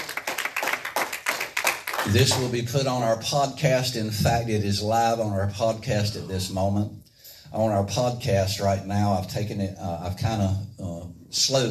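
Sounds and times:
group clapping hands in a fast steady rhythm: 0.0 - 2.6
speech: 2.1 - 10.6, 11.3 - 11.6.

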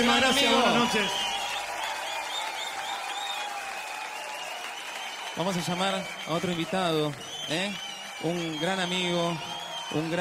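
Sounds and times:
speech: 0.0 - 1.3, 5.4 - 10.1
audience applause: 0.0 - 10.1.

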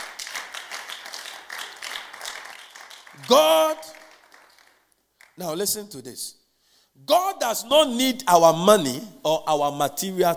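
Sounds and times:
audience clapping: 0.0 - 5.4
speech: 3.2 - 4.0, 5.4 - 6.4, 7.1 - 10.3.

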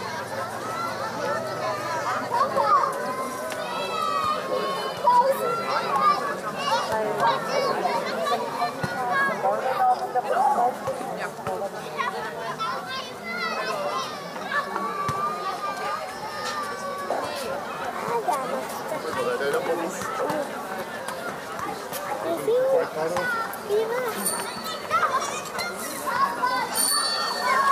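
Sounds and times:
children shouting and calling: 0.0 - 9.4, 12.4 - 18.0, 22.4 - 27.7
children playing and chattering on a playground: 0.0 - 27.7.

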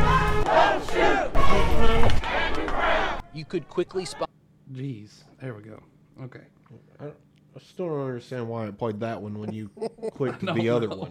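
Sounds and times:
crowd of demonstrators shouting: 0.0 - 4.3
speech: 3.4 - 11.0.

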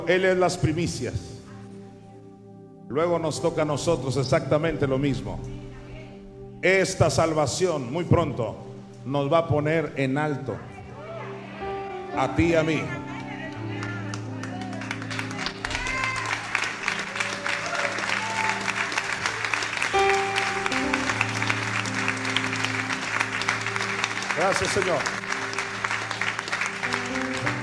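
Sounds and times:
speech: 0.0 - 1.4, 2.9 - 5.7, 6.6 - 10.7, 12.2 - 13.0, 24.5 - 25.2
audience applause: 13.2 - 27.6.

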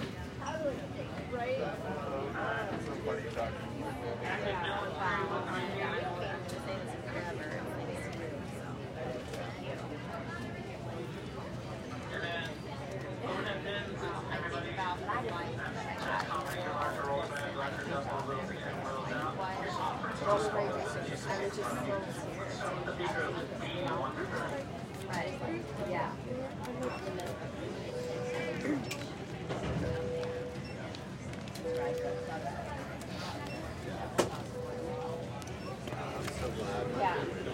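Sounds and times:
crowd voices at airport gate at Phoenix Sky Harbor International Airport: 0.0 - 37.5
brief tone: 27.9 - 29.0, 31.6 - 32.5, 34.4 - 35.8.

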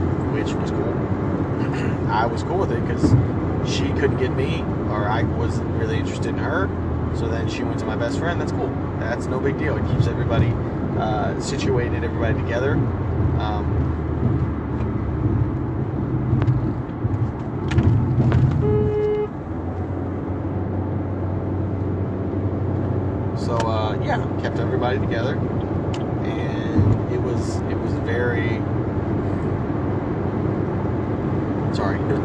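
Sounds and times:
car being driven on the road: 0.0 - 32.2
speech: 0.4 - 14.0.

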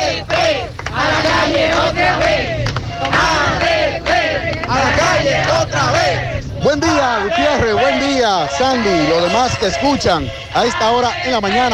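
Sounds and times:
protesting teachers chanting in the street: 0.0 - 11.7
speech: 7.0 - 11.7.

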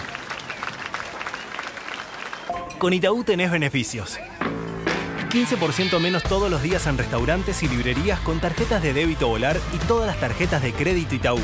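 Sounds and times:
applause at sunset: 0.0 - 3.0
speech: 2.5 - 4.5, 5.3 - 11.4.

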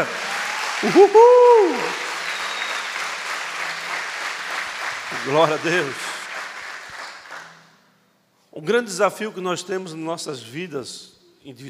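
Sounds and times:
audience applause: 0.0 - 7.5
speech: 0.8 - 2.0, 5.2 - 6.1, 8.6 - 11.6.

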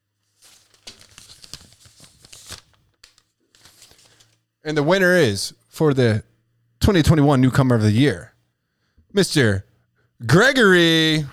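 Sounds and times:
envelope paper tearing and crinkling as it is opened: 0.4 - 4.4
speech: 4.6 - 8.3, 9.1 - 11.3.

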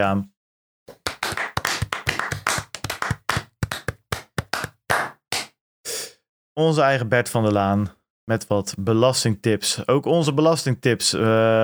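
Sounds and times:
speech: 0.0 - 0.3, 6.6 - 11.6
hand clapping: 0.9 - 5.5.

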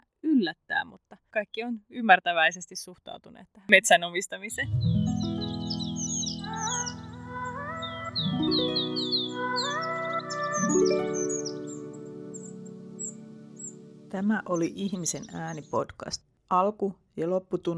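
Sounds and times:
speech: 0.4 - 5.2, 14.1 - 17.7
birdsong in a forest: 4.6 - 16.1.

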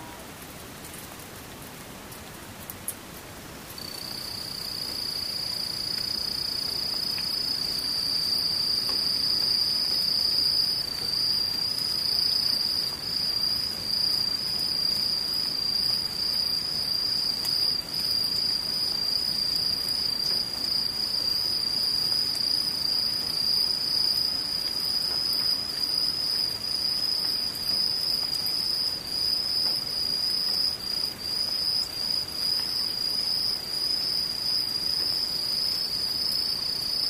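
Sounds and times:
soft hiss of falling rain: 0.0 - 37.0
crickets trilling: 3.8 - 37.0.

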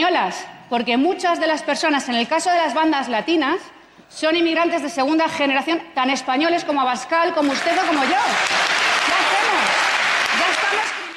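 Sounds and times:
speech: 0.0 - 8.7
crowd applause: 7.5 - 11.1.

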